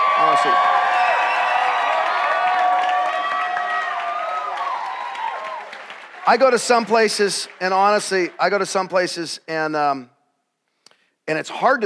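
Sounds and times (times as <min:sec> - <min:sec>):
shrill whoops: 0:00.0 - 0:06.0
crowd applause and cheering: 0:00.0 - 0:09.0
speech: 0:00.2 - 0:00.9, 0:06.3 - 0:10.1, 0:11.3 - 0:11.8.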